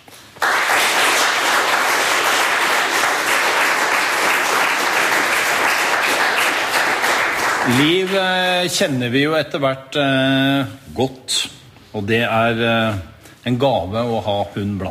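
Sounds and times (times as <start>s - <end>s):
audience applause: 0.4s - 8.3s
speech: 7.7s - 14.8s.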